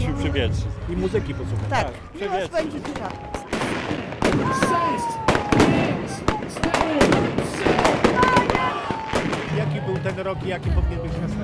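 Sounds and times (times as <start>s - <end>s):
speech: 0.2s - 8.0s, 9.6s - 11.4s
New Year's fireworks display: 2.5s - 10.2s.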